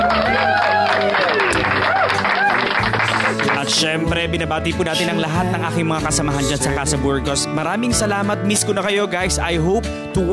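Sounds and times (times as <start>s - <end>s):
group of people cheering and shouting: 0.0s - 3.7s
group of people clapping: 0.0s - 5.0s
speech: 3.9s - 10.3s.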